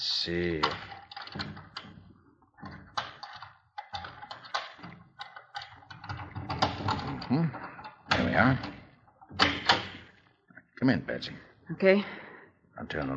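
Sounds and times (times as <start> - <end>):
speech: 0.0 - 1.6, 10.8 - 12.2, 12.8 - 13.1
door lock being picked: 0.6 - 10.1.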